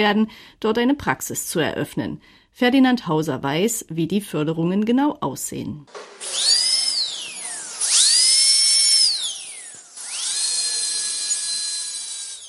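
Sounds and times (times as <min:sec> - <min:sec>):
speech: 0:00.0 - 0:06.6
dentist's drill whining: 0:05.9 - 0:12.4.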